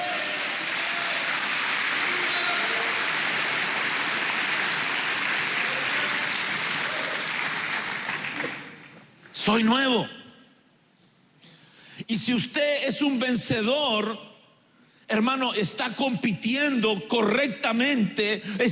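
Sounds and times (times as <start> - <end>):
audience clapping hands: 0.0 - 9.1
speech: 9.5 - 10.2, 12.1 - 14.3, 15.1 - 18.7.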